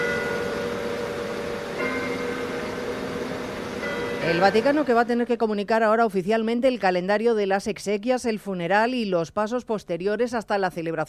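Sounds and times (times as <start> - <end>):
church bells in the Vatican ringing: 0.0 - 5.1
constant wash of noise: 0.0 - 11.0
speech: 4.2 - 11.0.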